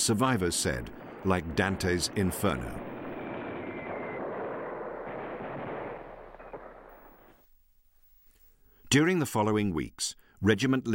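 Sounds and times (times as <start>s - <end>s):
speech: 0.0s - 2.9s, 8.9s - 10.9s
artillery bombardment booms: 0.5s - 7.4s.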